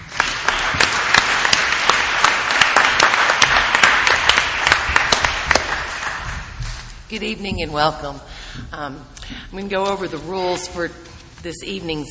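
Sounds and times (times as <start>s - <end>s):
audience applause welcoming a televised debate moderator: 0.0s - 6.6s
speech: 7.1s - 12.0s.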